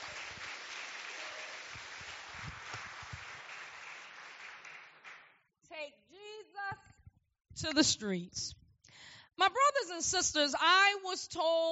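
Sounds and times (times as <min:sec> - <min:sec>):
crowd clapping hands in praise: 0:00.0 - 0:05.5
speech: 0:07.6 - 0:08.6, 0:09.4 - 0:11.7.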